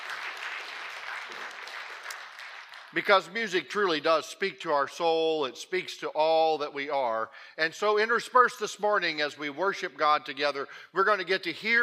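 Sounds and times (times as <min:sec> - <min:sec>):
audience applauding: 0:00.0 - 0:03.3
speech: 0:02.9 - 0:11.8.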